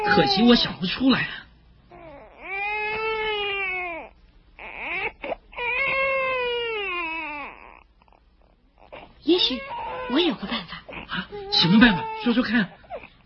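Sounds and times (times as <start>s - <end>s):
baby crying: 0.0s - 0.8s, 1.9s - 8.2s, 8.8s - 13.2s
speech: 0.0s - 1.4s, 9.5s - 10.6s, 11.6s - 12.8s.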